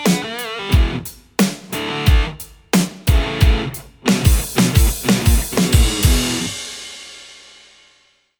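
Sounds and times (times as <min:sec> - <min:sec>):
Les Paul electric guitar with amp distortion: 0:00.0 - 0:06.6.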